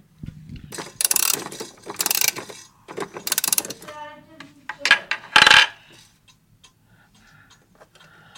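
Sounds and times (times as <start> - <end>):
winding a pendulum clock with a key: 0.7 - 3.9.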